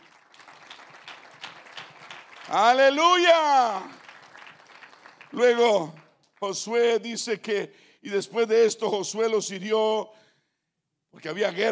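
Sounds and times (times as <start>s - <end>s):
audience applause: 0.0s - 6.2s
speech: 2.5s - 4.0s, 5.3s - 10.2s, 11.1s - 11.7s.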